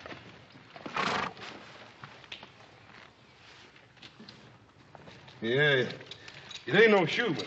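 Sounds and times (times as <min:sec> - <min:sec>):
horse hooves: 0:00.0 - 0:07.4
horse whinnying: 0:00.8 - 0:01.4
speech: 0:05.4 - 0:06.1, 0:06.7 - 0:07.4.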